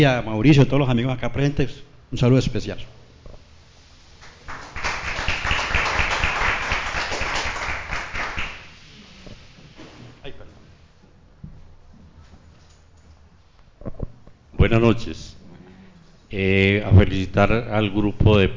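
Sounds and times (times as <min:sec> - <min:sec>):
speech: 0:00.0 - 0:03.0, 0:14.6 - 0:15.3, 0:16.3 - 0:18.5
audience applause at a poetry reading: 0:04.2 - 0:08.7.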